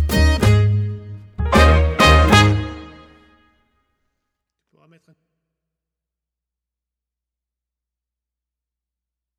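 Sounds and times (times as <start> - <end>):
accordion: 0.0 - 3.4
trumpet: 0.0 - 3.6.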